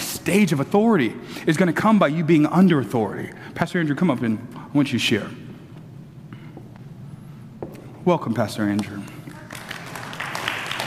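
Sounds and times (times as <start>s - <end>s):
speech: 0.2s - 5.5s, 8.0s - 9.2s
weak audience clapping: 9.1s - 10.8s.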